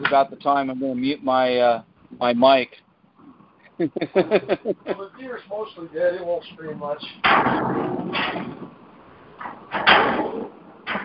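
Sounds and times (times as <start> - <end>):
speech: 0.0 - 2.8, 3.8 - 8.6
laughter: 3.7 - 5.2
banging on steel plate: 7.2 - 8.7, 9.4 - 11.0.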